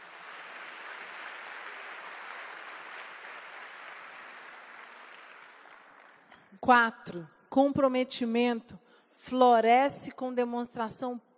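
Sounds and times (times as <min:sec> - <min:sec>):
audience applause: 0:00.0 - 0:06.4
speech: 0:06.6 - 0:11.3.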